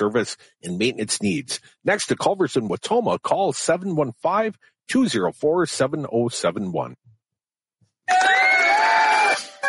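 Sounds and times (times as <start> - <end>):
speech: 0.0 - 7.1
crowd cheering sound effect: 8.1 - 9.5.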